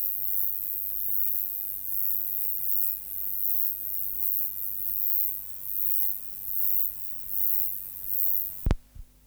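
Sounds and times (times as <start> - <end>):
Roesel's bush-cricket song: 0.0 - 9.0
sharp click: 8.6 - 9.1.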